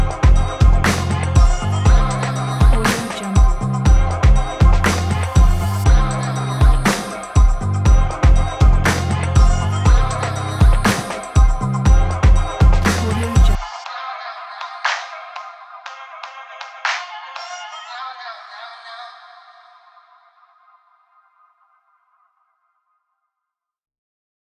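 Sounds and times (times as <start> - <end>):
hip hop music: 0.0 - 19.0.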